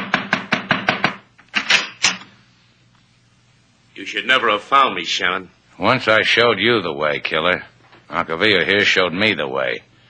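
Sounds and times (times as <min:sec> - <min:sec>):
knocking on a door: 0:00.0 - 0:01.3
speech: 0:04.0 - 0:09.9.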